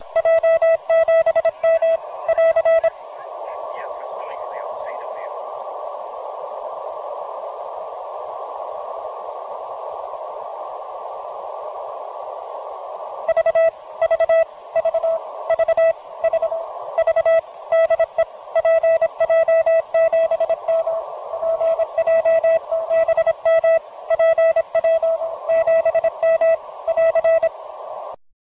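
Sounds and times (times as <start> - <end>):
beacon signal: 0.0 - 2.9, 13.3 - 27.5.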